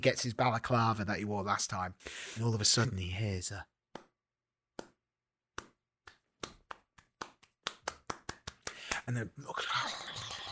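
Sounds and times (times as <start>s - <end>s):
speech: 0.0s - 3.8s, 9.1s - 10.0s
applause: 6.4s - 9.1s.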